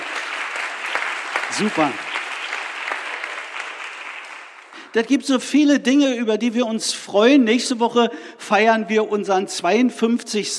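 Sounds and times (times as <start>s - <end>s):
applause: 0.0s - 4.9s
speech: 1.5s - 2.1s, 4.9s - 10.5s.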